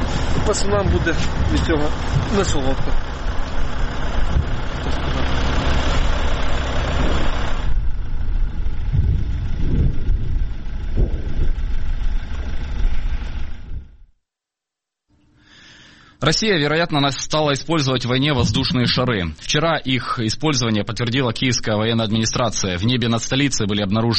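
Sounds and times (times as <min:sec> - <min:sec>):
engine idling: 0:00.0 - 0:14.1
speech: 0:00.5 - 0:03.4, 0:16.2 - 0:24.1.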